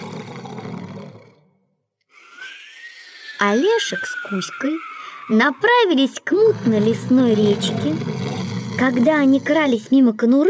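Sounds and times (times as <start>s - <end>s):
loud snoring: 0.0s - 1.5s, 6.4s - 10.2s
speech: 3.4s - 8.2s, 8.8s - 10.4s.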